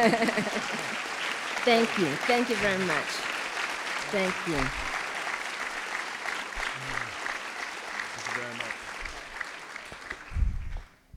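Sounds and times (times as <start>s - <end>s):
speech: 0.0s - 0.8s, 1.6s - 3.3s, 4.1s - 4.8s
laughter: 0.0s - 3.2s, 4.1s - 4.9s
audience applause: 0.0s - 10.9s.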